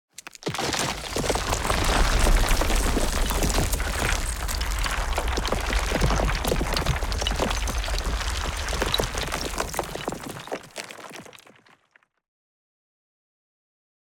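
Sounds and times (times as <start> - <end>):
massive wall collapsing: 0.4 - 11.6.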